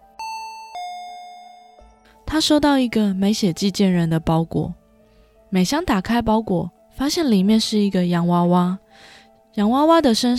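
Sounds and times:
two-tone ding-dong doorbell chime: 0:00.0 - 0:02.0
speech: 0:02.3 - 0:04.8, 0:05.5 - 0:10.3.

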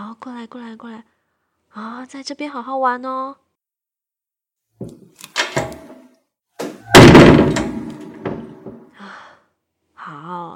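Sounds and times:
speech: 0:00.0 - 0:03.4, 0:10.0 - 0:10.5
pet gate knocks and clatters: 0:04.8 - 0:08.8
metal pet gate slamming shut: 0:05.3 - 0:08.8
thud: 0:06.6 - 0:08.9.

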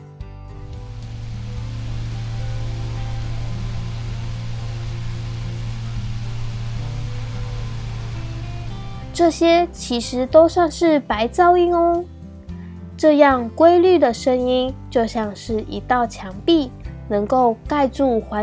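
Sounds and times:
electric fan running: 0:00.6 - 0:10.2
speech: 0:09.2 - 0:12.1, 0:13.0 - 0:18.4.

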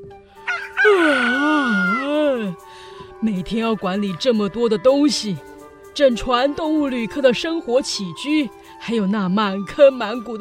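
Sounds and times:
rooster crowing: 0:00.4 - 0:02.3
speech: 0:03.2 - 0:10.3.

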